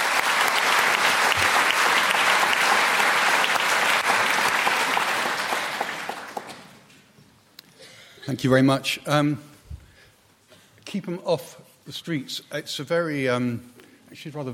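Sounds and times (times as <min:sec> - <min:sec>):
audience applause greeting a speaker at a debate: 0:00.0 - 0:06.8
speech: 0:08.3 - 0:09.5, 0:10.9 - 0:14.5.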